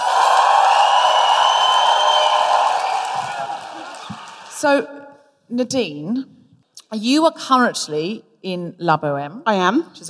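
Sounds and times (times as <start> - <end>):
live audience applauding to welcome an opera singer: 0.0 - 4.6
speech: 4.6 - 10.0.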